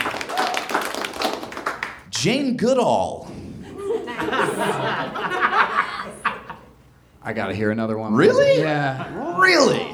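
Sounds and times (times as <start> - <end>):
audience clapping: 0.0 - 2.1
speech: 2.2 - 3.4, 7.2 - 9.9
laughter: 3.6 - 6.8, 8.7 - 9.4.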